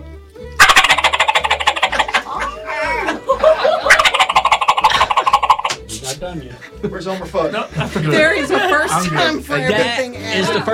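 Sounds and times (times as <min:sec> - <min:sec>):
turkey gobble made with mouth call: 0:00.6 - 0:02.4, 0:03.6 - 0:05.8
laughter: 0:01.6 - 0:05.6, 0:06.5 - 0:10.7
speech: 0:06.3 - 0:10.7.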